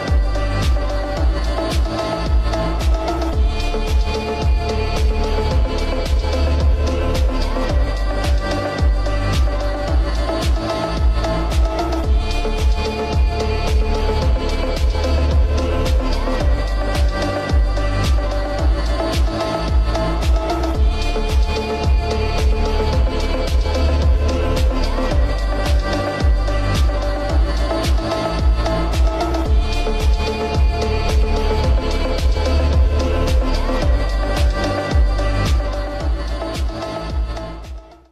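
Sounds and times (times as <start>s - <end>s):
remix reverb bass: 0.0s - 38.0s.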